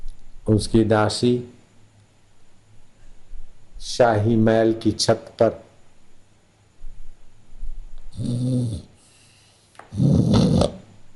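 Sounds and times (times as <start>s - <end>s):
speech: 0.5s - 1.6s, 3.8s - 5.6s
loud rough snoring: 8.2s - 9.0s, 9.9s - 10.8s.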